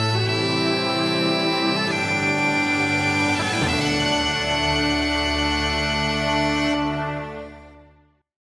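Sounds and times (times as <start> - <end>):
Scottish bagpipes: 0.0 - 7.9.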